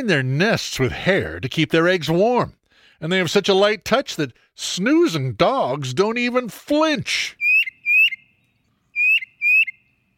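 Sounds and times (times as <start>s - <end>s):
speech: 0.0s - 7.4s
tufted titmouse call: 7.4s - 9.9s.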